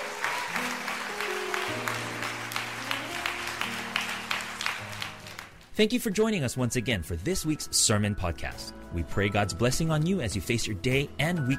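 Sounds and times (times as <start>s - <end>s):
audience hand clapping: 0.0s - 5.8s
speech: 5.8s - 11.5s.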